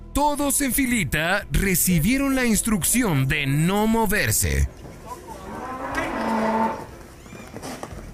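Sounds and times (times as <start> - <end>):
speech: 0.2 - 4.8
bull bellowing in Nuevo León, Mexico: 5.2 - 7.0.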